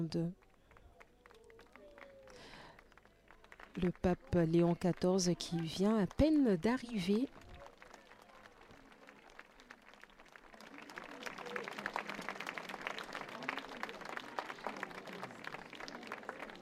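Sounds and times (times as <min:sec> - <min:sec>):
speech: 0:00.0 - 0:00.4, 0:03.8 - 0:07.4
crowd applauding: 0:00.5 - 0:06.3, 0:07.1 - 0:16.6
murmuring voices: 0:10.6 - 0:16.6.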